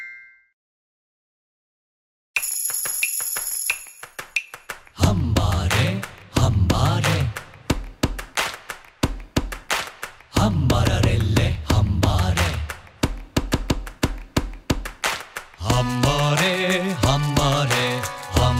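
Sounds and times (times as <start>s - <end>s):
body percussion rhythm game: 2.4s - 18.5s.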